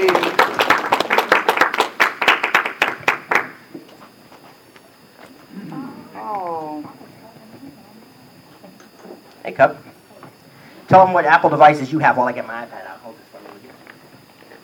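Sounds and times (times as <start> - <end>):
audience clapping for a boy called on stage at a presentation: 0.0 - 3.7
speech: 9.6 - 9.8, 10.9 - 12.8.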